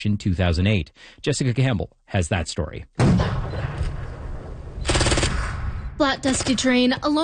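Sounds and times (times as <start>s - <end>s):
speech: 0.0s - 3.4s, 6.0s - 7.2s
simulated explosions at a military training base: 3.0s - 7.2s
dense rapid rattling gunfire-like burst at a military training base: 4.9s - 5.5s.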